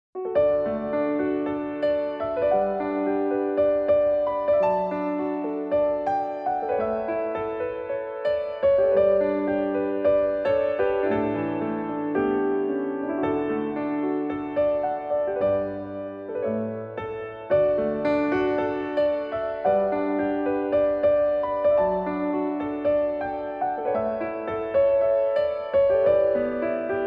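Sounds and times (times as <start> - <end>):
solo piano: 0.2 - 27.0.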